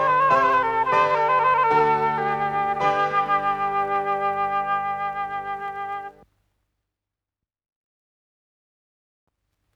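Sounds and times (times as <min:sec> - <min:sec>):
sonata in H minor adagio: 0:00.0 - 0:06.2.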